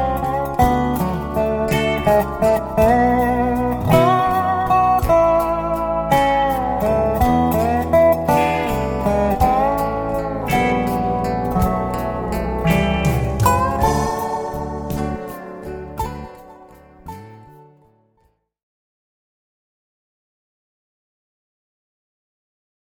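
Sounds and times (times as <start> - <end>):
blues music: 0.0 - 18.0.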